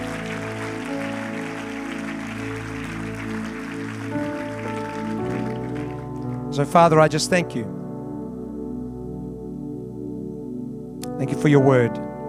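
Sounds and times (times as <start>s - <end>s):
audience clapping: 0.0s - 7.1s
speech: 6.6s - 7.8s, 11.2s - 12.0s.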